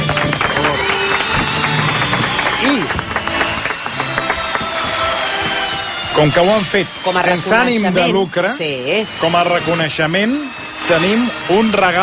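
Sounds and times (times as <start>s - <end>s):
crowd applause: 0.0s - 8.2s
speech: 6.2s - 12.0s.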